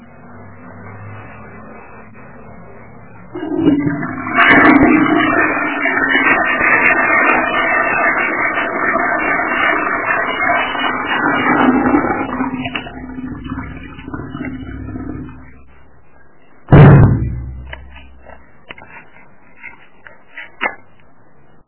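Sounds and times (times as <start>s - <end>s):
rumbling boom: 3.4s - 15.8s, 16.7s - 18.4s.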